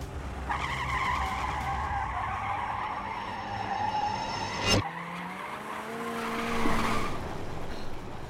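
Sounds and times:
car engine roaring: 0.0 - 8.2
getaway car tires squealing: 0.5 - 7.4.

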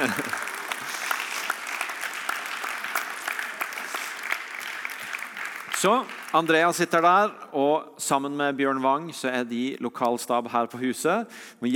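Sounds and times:
laughter: 0.0 - 0.7
audience applause: 0.0 - 6.8
speech: 0.1 - 0.4, 5.8 - 11.7.

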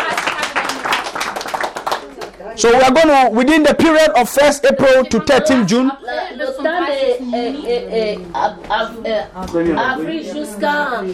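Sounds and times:
crowd clapping hands: 0.0 - 2.4
speech: 2.6 - 11.1.

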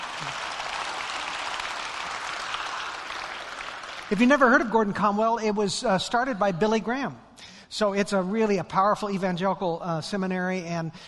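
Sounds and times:
audience clapping: 0.0 - 4.6
speech: 4.1 - 11.0.

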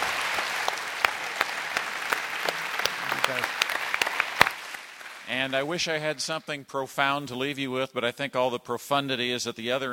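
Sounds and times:
audience applauding: 0.0 - 6.1
speech: 5.4 - 9.9.

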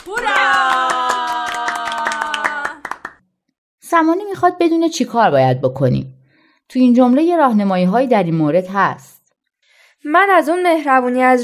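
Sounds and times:
group clapping rhythmically: 0.0 - 3.2
speech: 4.0 - 9.1, 10.0 - 11.4.

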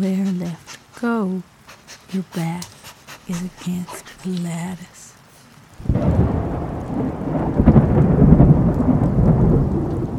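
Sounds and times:
speech: 0.0 - 1.5, 2.1 - 2.7, 3.3 - 5.0
thunderclap in a rainstorm: 5.8 - 10.1.

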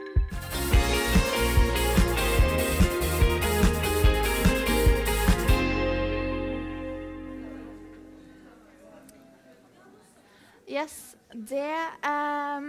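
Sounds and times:
pop song by a girl group: 0.2 - 5.7
speech: 10.8 - 12.6.

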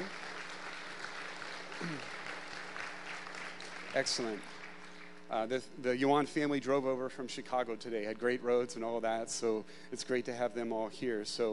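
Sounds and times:
audience applause: 0.0 - 5.1
speech: 1.8 - 2.2, 3.9 - 4.6, 5.3 - 11.5.

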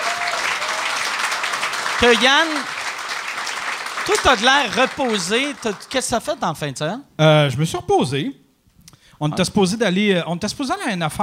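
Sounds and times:
audience applause: 0.0 - 6.4
speech: 2.0 - 2.8, 4.0 - 8.4, 9.2 - 11.2.

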